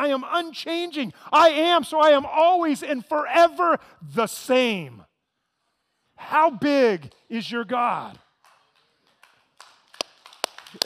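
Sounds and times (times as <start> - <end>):
speech: 0.1 - 5.1, 6.2 - 8.2
person clapping: 8.2 - 10.8.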